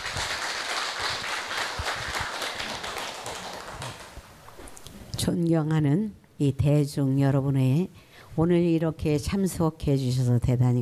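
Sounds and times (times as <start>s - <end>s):
audience applause: 0.0s - 4.2s
speech: 5.2s - 10.7s.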